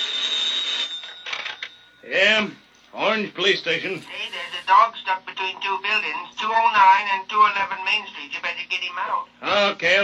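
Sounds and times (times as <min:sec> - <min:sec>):
telephone ringing in a police station: 0:00.0 - 0:04.4
speech: 0:02.1 - 0:08.1, 0:09.0 - 0:10.0.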